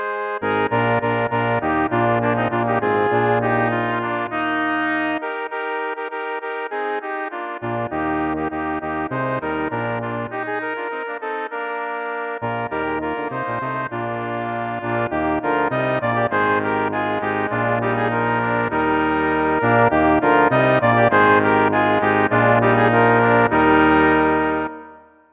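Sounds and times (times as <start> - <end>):
festive music: 0.1 - 25.3.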